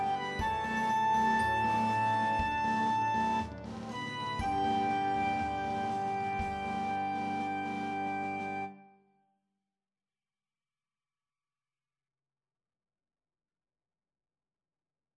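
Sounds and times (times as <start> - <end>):
B-flat clarinet: 0.0 - 9.2.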